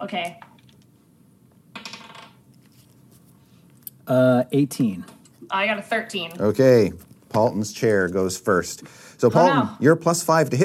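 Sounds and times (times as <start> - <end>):
speech: 0.0 - 0.5, 4.1 - 10.6
dice rolling on a table: 1.7 - 2.5.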